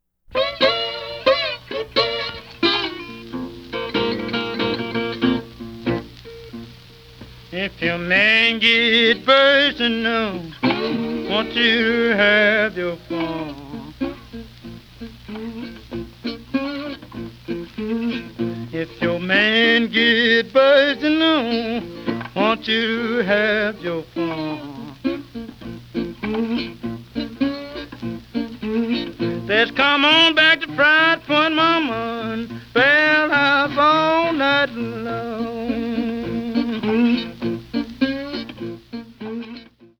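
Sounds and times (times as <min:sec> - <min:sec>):
blues music: 0:00.2 - 0:39.9.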